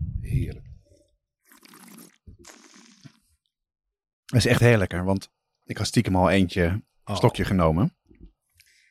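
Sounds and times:
speech: 0.2s - 0.7s, 4.3s - 8.0s
slurping sips of sweet white Sauternes wine: 1.5s - 3.2s.

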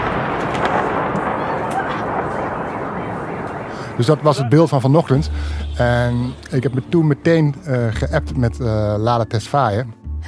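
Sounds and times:
machine gun fire at a drone: 0.0s - 3.8s
speech: 4.0s - 10.2s.

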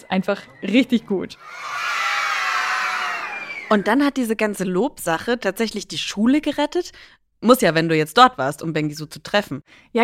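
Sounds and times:
speech: 0.0s - 2.0s, 3.7s - 10.0s
children cheering at school: 1.4s - 4.0s.

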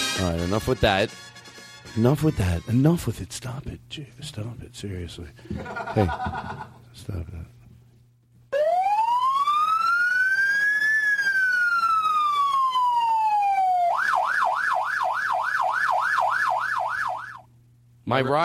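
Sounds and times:
speech: 0.2s - 1.3s, 1.9s - 7.6s, 18.1s - 18.4s
laughter: 5.4s - 6.9s
emergency siren wailing and yelping: 8.5s - 17.5s.

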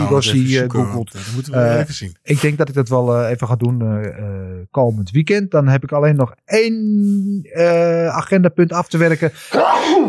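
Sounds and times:
speech: 0.1s - 10.0s
loud sneeze: 9.5s - 10.0s.

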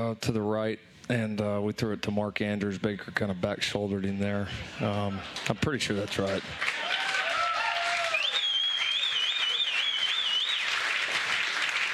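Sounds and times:
speech: 0.0s - 6.8s
audience clapping: 5.2s - 11.9s
high whistling: 8.1s - 10.8s.

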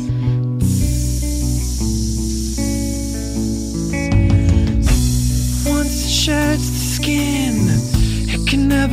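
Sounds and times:
crowd of people hissing like a snake: 0.0s - 8.8s.

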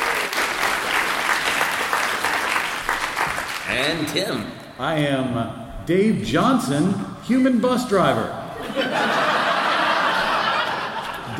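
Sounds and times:
audience applause: 0.0s - 4.1s
speech: 3.8s - 8.8s
laughter: 8.5s - 11.3s.

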